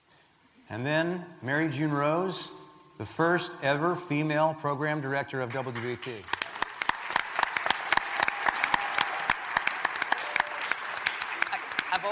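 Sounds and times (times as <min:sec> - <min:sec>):
speech: 0:00.7 - 0:06.4
audience applause: 0:05.7 - 0:12.1.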